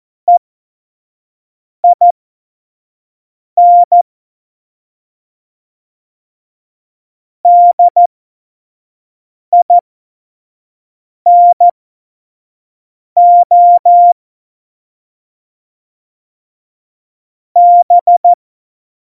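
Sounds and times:
CW Morse code beeps: 0:01.8 - 0:02.1, 0:03.6 - 0:04.0, 0:07.5 - 0:08.1, 0:11.3 - 0:11.7, 0:13.2 - 0:14.2, 0:17.6 - 0:18.4.

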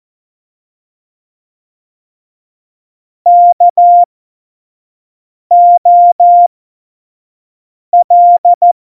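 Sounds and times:
morse code CW: 0:03.3 - 0:04.1, 0:05.5 - 0:06.5, 0:08.0 - 0:08.8.

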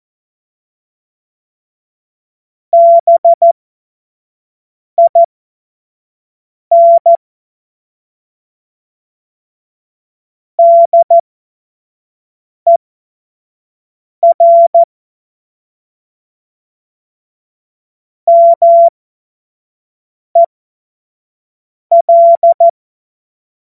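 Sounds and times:
CW Morse code beeps: 0:02.8 - 0:03.5, 0:05.0 - 0:05.3, 0:06.7 - 0:07.2, 0:10.6 - 0:11.2, 0:14.2 - 0:14.9, 0:18.3 - 0:18.9, 0:21.9 - 0:22.7.

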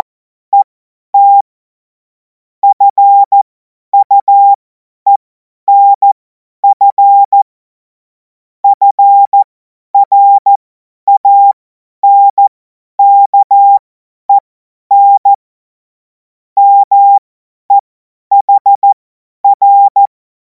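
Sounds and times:
CW Morse code beeps: 0:01.2 - 0:01.4, 0:02.6 - 0:03.4, 0:04.0 - 0:07.4, 0:08.6 - 0:09.4, 0:10.0 - 0:15.4, 0:16.6 - 0:20.1.

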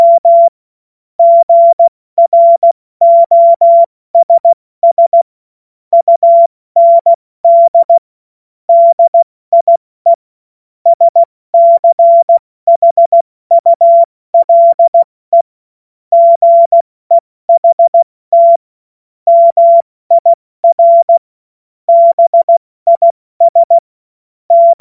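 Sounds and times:
CW Morse code beeps: 0:00.0 - 0:00.5, 0:01.2 - 0:05.3, 0:05.9 - 0:08.0, 0:08.7 - 0:10.2, 0:10.9 - 0:15.5, 0:16.1 - 0:18.6, 0:19.3 - 0:21.2, 0:21.9 - 0:23.8, 0:24.5 - 0:24.7.

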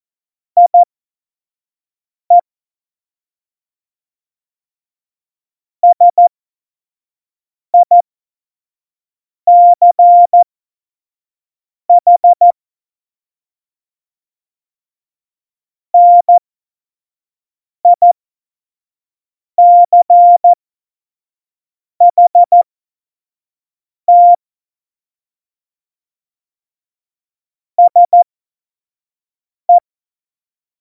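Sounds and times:
morse code beeps at tempo 25: 0:00.6 - 0:00.9, 0:05.8 - 0:06.2, 0:09.5 - 0:10.4, 0:12.0 - 0:12.5, 0:16.0 - 0:16.4, 0:17.9 - 0:18.1, 0:19.6 - 0:20.6, 0:22.1 - 0:22.6, 0:24.1 - 0:24.4, 0:27.8 - 0:28.2.

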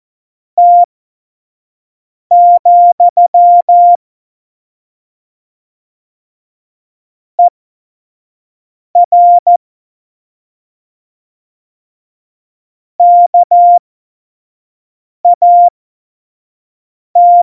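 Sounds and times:
CW Morse code at tempo 70: 0:00.6 - 0:00.9, 0:02.3 - 0:04.0, 0:09.0 - 0:09.6, 0:13.0 - 0:13.8, 0:15.3 - 0:15.7, 0:17.2 - 0:17.4.

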